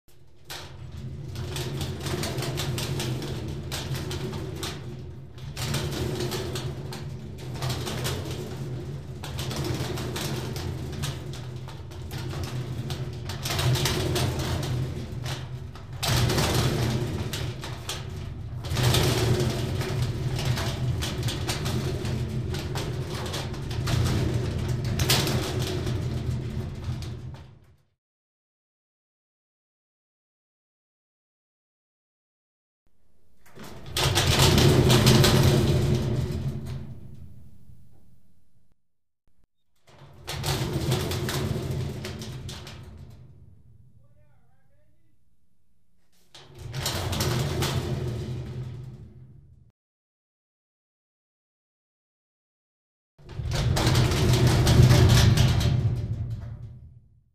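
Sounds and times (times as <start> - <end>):
metal barrel being rolled: 0.3 - 27.5, 33.2 - 38.3, 39.9 - 44.2, 46.4 - 49.4, 53.3 - 56.7.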